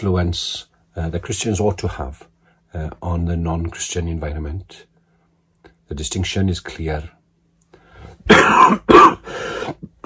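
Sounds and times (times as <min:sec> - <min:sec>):
speech: 0:00.0 - 0:04.9, 0:05.9 - 0:07.2, 0:08.3 - 0:09.2
person with a cold clearing their throat: 0:08.3 - 0:10.0
person with a cold coughing: 0:08.3 - 0:10.0.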